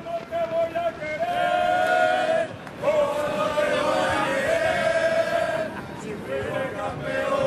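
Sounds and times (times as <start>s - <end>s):
Real Madrid football fans outside Santiago Bernabéu stadium: 0.0s - 7.4s.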